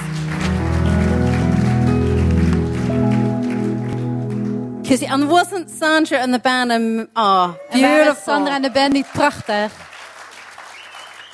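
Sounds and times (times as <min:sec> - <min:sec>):
church audience applauding the band: 0:00.0 - 0:04.8, 0:07.8 - 0:11.3
held ringing musical chord: 0:00.2 - 0:06.4
speech: 0:04.9 - 0:09.9.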